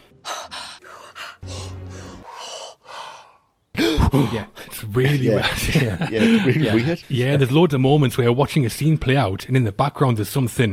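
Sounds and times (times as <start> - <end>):
voice imitating cult members' rhythmic ritual breathing with breathy gasps: 0.0 - 4.7
speech: 3.9 - 10.7
laughter: 4.0 - 7.0.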